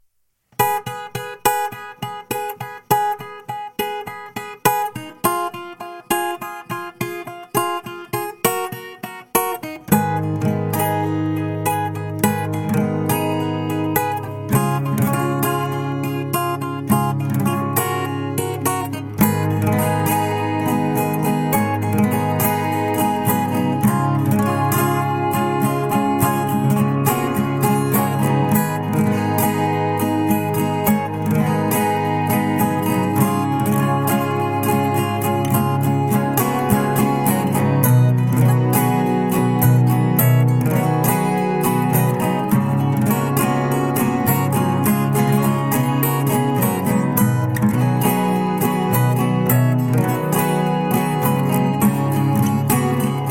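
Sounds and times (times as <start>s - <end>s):
guitar: 0.0s - 53.2s.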